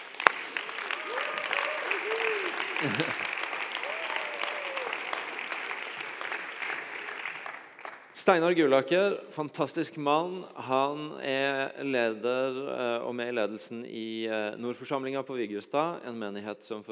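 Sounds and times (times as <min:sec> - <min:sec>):
audience applause: 0:00.0 - 0:08.1
laughter: 0:01.0 - 0:05.3
speech: 0:02.8 - 0:03.3, 0:08.2 - 0:16.8.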